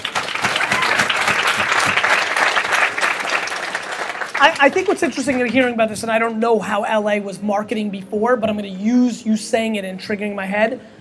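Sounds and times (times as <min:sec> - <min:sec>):
audience applause: 0:00.0 - 0:05.5
speech: 0:04.4 - 0:10.9.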